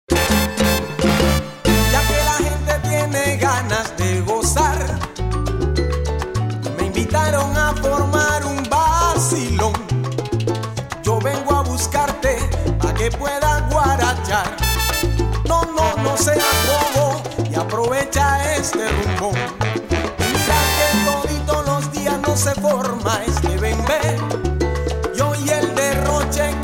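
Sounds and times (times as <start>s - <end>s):
guaracha and bembe Afro-Cuban music: 0.0s - 26.6s.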